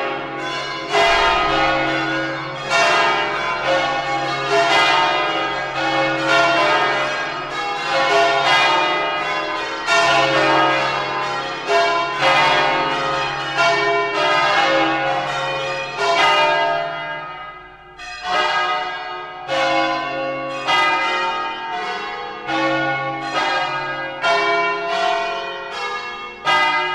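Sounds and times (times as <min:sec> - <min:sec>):
concert of bells ringing: 0:00.0 - 0:26.9.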